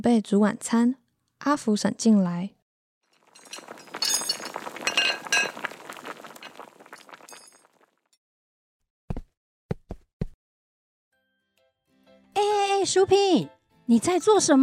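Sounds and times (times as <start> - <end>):
speech: 0.0 - 2.6, 12.8 - 14.6
kitchen clatter of dishes and utensils clinking: 3.2 - 6.6.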